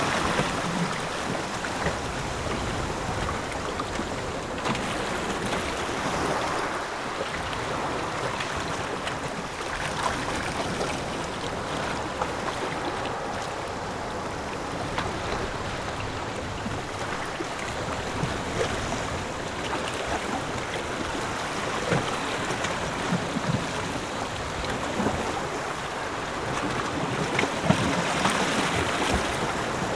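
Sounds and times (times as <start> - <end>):
light ocean waves on rocks: 0.0 - 29.9.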